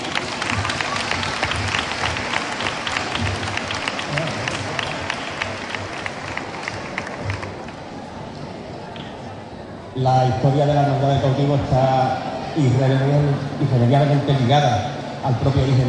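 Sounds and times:
audience applause: 0.0 - 7.8
speech: 10.0 - 15.8.

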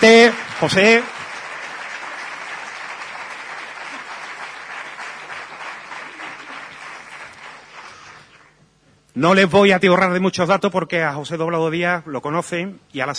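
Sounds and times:
speech: 0.0 - 1.2, 9.2 - 13.1
large audience applause: 0.0 - 8.5.

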